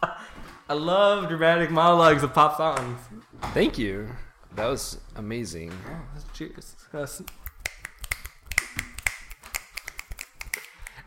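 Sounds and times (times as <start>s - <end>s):
speech: 0.7s - 7.4s
finger snapping: 7.2s - 11.0s.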